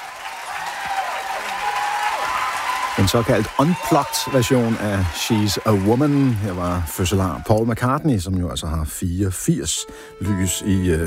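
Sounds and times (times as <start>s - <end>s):
audience applause: 0.0s - 8.0s
speech: 3.0s - 11.0s.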